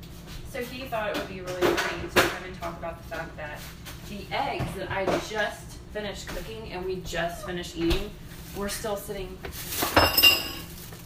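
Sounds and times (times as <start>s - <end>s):
speech: 0.6s - 10.4s
utensil clinking on bowl: 9.8s - 10.8s.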